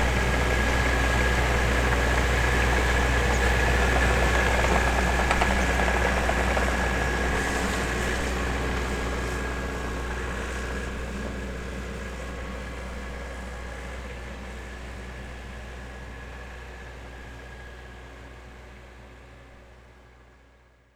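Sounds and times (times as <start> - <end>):
tractor engine rattling and droning: 0.0 - 15.9.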